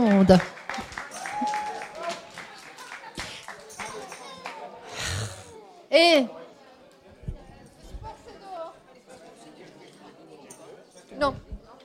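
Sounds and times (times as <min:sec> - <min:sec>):
crowd applause: 0:00.0 - 0:05.6
speech: 0:00.2 - 0:00.6, 0:06.0 - 0:06.4.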